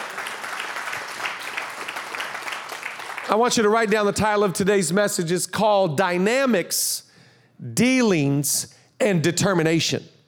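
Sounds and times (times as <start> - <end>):
audience clapping: 0.0 - 4.1
speech: 3.3 - 7.0, 7.6 - 10.1.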